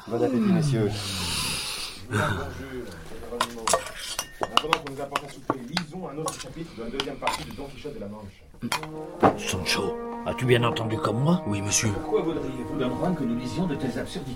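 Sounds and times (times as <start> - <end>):
speech: 0.1 - 1.3, 2.1 - 3.8, 4.5 - 14.3
pots, dishes and cutlery at an inn's supper table: 3.3 - 7.7, 8.6 - 9.5.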